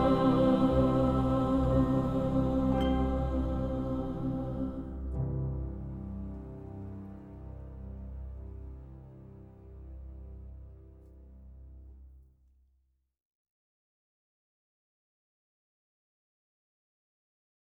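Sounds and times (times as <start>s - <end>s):
soprano singing: 0.0s - 10.1s.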